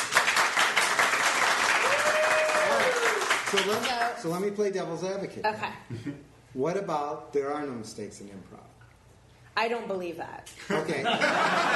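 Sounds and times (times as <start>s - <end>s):
crowd clapping: 0.0s - 4.2s
long sustained whoop or whistle: 1.8s - 3.2s
speech: 3.5s - 8.8s, 9.6s - 11.7s
laughter: 10.9s - 11.7s.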